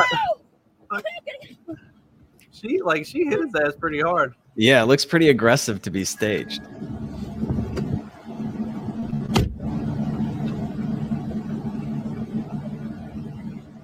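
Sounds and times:
speech: 2.6s - 6.8s
car pulling up: 6.1s - 13.8s.

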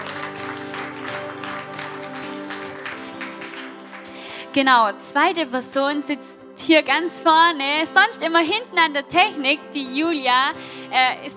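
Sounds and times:
audience applause: 0.0s - 4.5s
speech: 4.5s - 11.3s.

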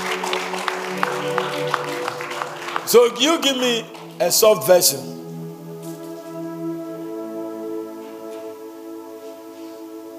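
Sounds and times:
audience clapping: 0.0s - 4.7s
speech: 2.9s - 5.2s.

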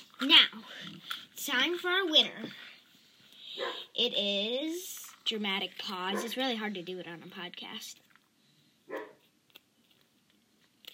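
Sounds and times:
speech: 0.2s - 0.8s, 1.5s - 2.7s, 3.6s - 8.1s
dog barking: 3.6s - 3.9s, 6.1s - 6.4s, 8.9s - 9.2s.

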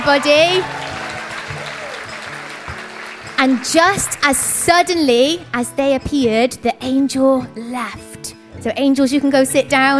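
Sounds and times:
audience applause: 0.0s - 4.7s
speech: 0.1s - 0.8s, 3.4s - 9.9s.

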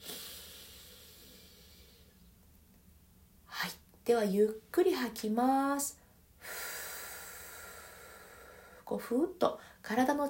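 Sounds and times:
slow inhalation through the nose or mouth during a breathing exercise: 0.0s - 2.3s, 6.4s - 8.8s
speech: 4.1s - 6.6s, 8.9s - 10.2s.

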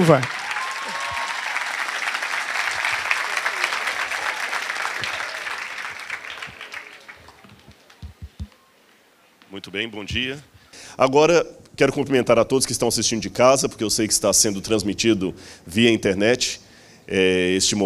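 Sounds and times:
speech: 0.0s - 0.4s, 9.7s - 17.8s
crowd sustained applause: 0.0s - 8.6s.

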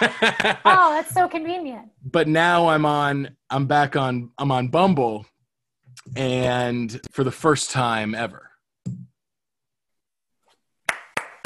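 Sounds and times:
laughter: 0.0s - 1.1s
speech: 0.0s - 5.3s, 6.0s - 9.0s
single person clapping hands: 10.8s - 11.4s.

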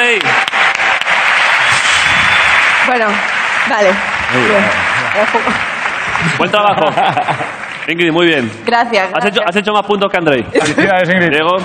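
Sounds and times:
audience applause: 0.0s - 8.6s
speech: 2.9s - 11.6s
laughter: 6.1s - 7.7s, 10.6s - 11.2s.

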